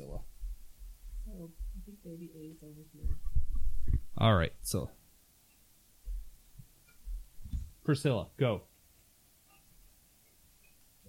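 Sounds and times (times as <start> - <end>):
heartbeat thumps: 0.0 - 4.3, 6.0 - 7.8
faint hum: 0.0 - 7.8
speech: 2.0 - 3.4, 4.2 - 5.0, 7.9 - 8.7.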